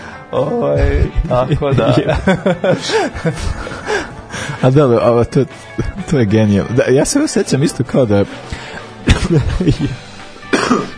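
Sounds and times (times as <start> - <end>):
speech: 0.3 - 10.1
laughter: 0.8 - 4.8, 9.0 - 10.1
person coughing: 9.1 - 10.9.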